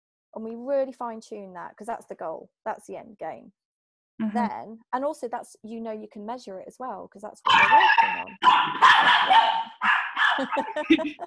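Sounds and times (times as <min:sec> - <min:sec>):
speech: 0:00.4 - 0:03.6, 0:04.2 - 0:11.2
dog barking at the door: 0:07.5 - 0:10.9
laughter: 0:10.2 - 0:11.2.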